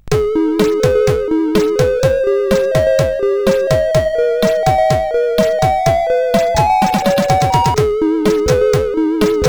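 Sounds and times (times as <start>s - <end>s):
SID CSG8580R5 chip music imitation: 0.0s - 9.4s.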